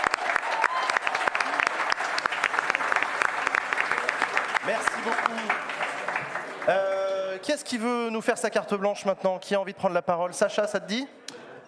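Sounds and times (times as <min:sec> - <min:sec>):
audience applause: 0:00.0 - 0:07.4
speech: 0:06.6 - 0:11.3.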